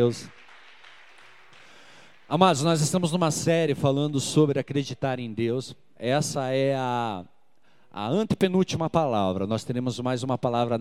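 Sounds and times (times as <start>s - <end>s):
speech: 0.0s - 0.4s, 2.3s - 7.3s, 7.9s - 10.7s
audience applause: 0.0s - 2.2s.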